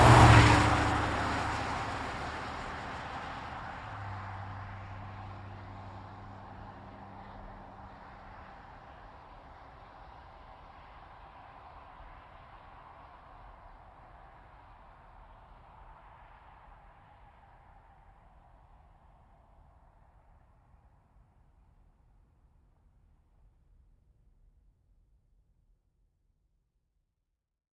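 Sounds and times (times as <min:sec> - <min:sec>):
GMC Savana truck engine: 0:00.0 - 0:09.8.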